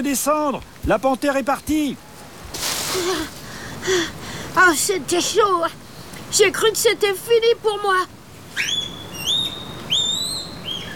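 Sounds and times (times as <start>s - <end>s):
speech: 0.0s - 2.1s, 2.9s - 8.9s
female giant panda calling: 8.6s - 10.9s.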